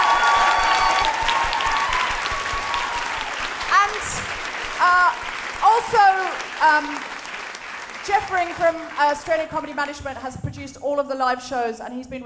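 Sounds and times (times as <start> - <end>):
audience whistles and cheers: 0.0 - 3.6
theatre audience applause: 0.0 - 10.0
speech: 5.8 - 7.1, 8.0 - 12.2.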